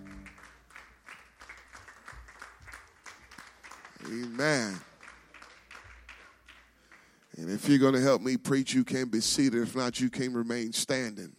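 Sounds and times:
audience clapping hands: 0:00.0 - 0:08.0
speech: 0:04.1 - 0:04.9, 0:07.4 - 0:11.3.

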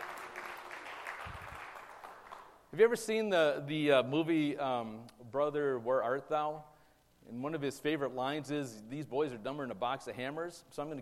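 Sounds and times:
audience applause: 0:00.0 - 0:02.6
speech: 0:02.8 - 0:11.0.

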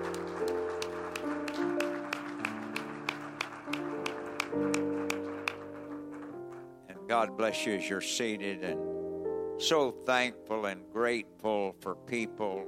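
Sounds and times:
audience clapping in rhythm: 0:00.0 - 0:06.8
sustained organ or keyboard chords: 0:00.0 - 0:12.6
speech: 0:07.1 - 0:08.9, 0:09.6 - 0:12.6.

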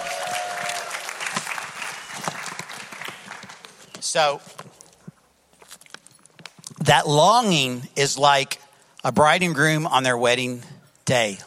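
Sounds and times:
crowd clapping: 0:00.0 - 0:03.9
speech: 0:04.1 - 0:04.6, 0:06.9 - 0:11.4.

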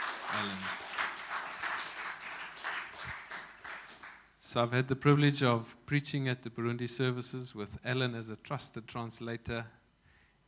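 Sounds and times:
audience clapping: 0:00.0 - 0:04.3
speech: 0:00.3 - 0:00.8, 0:04.5 - 0:09.8.

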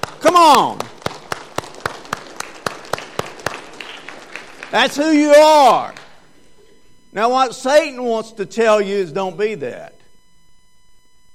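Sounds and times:
round of applause: 0:00.0 - 0:06.2
speech: 0:00.3 - 0:01.0, 0:04.7 - 0:06.0, 0:07.1 - 0:10.0.

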